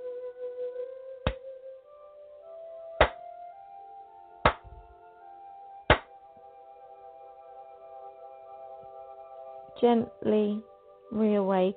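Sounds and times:
hand claps: 0:03.0 - 0:03.2, 0:04.5 - 0:04.7
speech: 0:09.8 - 0:11.7.

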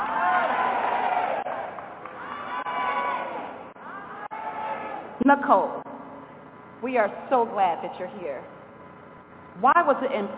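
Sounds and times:
audience screaming and cheering: 0:00.0 - 0:05.1
speech: 0:05.2 - 0:05.9, 0:06.8 - 0:08.6, 0:09.6 - 0:10.3.

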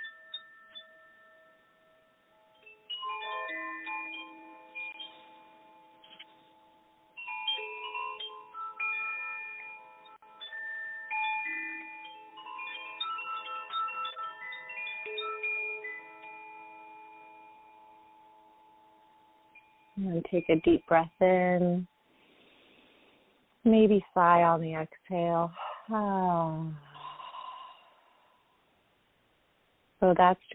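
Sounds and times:
ringing chimes: 0:00.0 - 0:22.8
speech: 0:20.0 - 0:21.9, 0:23.6 - 0:26.9, 0:30.0 - 0:30.5.

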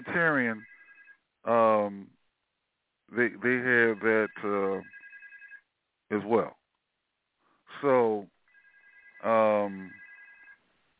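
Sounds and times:
phone ringing with a two-pitch electronic tone: 0:00.1 - 0:01.2, 0:03.6 - 0:05.6, 0:08.5 - 0:10.6
speech: 0:00.2 - 0:00.7, 0:01.4 - 0:02.2, 0:03.1 - 0:05.0, 0:06.1 - 0:06.6, 0:07.8 - 0:08.3, 0:09.2 - 0:10.0.

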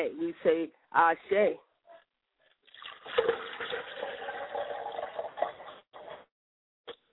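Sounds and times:
speech: 0:00.0 - 0:01.7
liquid being poured as libation: 0:02.6 - 0:06.1.

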